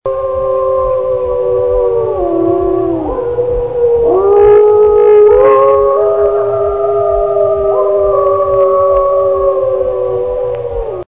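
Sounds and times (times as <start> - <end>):
wolf: 0.1 - 11.0.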